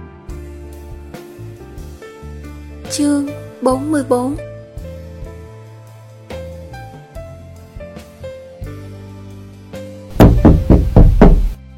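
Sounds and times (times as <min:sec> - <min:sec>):
speech: 0:02.9 - 0:04.5
knocking on a door: 0:10.1 - 0:11.6.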